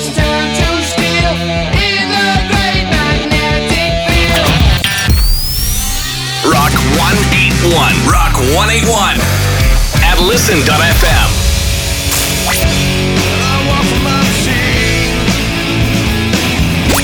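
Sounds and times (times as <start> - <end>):
rock imaging montage: 0.0 - 17.0.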